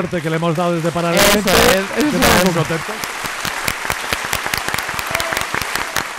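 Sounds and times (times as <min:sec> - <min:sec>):
speech: 0:00.0 - 0:03.1
applause: 0:00.0 - 0:06.1.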